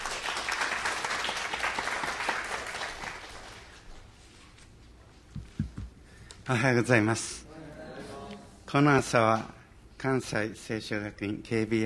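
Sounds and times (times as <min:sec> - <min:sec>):
audience applause: 0:00.0 - 0:03.8
speech: 0:06.5 - 0:07.4, 0:08.7 - 0:11.8.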